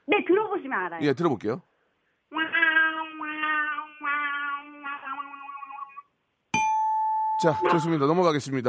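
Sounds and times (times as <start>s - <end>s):
speech: 0.5s - 1.7s, 7.4s - 8.6s
voice imitating a video game losing sound: 2.3s - 6.0s
bright ding: 6.5s - 8.1s.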